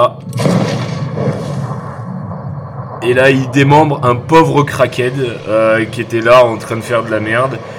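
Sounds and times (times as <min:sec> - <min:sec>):
speech: 0:00.0 - 0:00.6, 0:03.0 - 0:07.7
sniper rifle gunshot in video game: 0:00.2 - 0:03.8.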